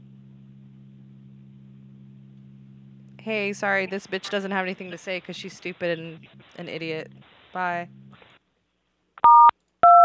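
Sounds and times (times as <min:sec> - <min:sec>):
speech: 0:03.2 - 0:08.0
telephone keypad dual-pitched tones: 0:09.2 - 0:10.0.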